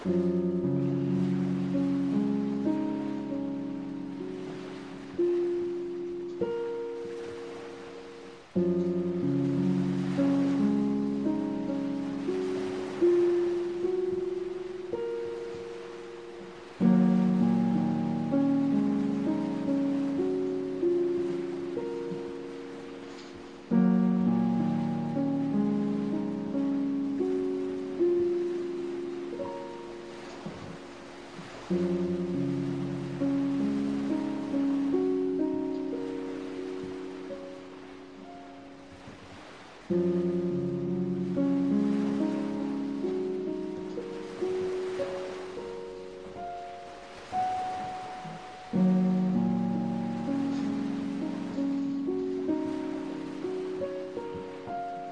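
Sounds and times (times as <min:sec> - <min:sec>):
ocean: 0:00.0 - 0:55.1
piano: 0:00.0 - 0:55.1.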